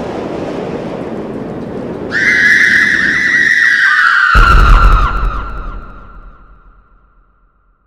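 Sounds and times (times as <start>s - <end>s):
person screaming: 2.1s - 5.8s.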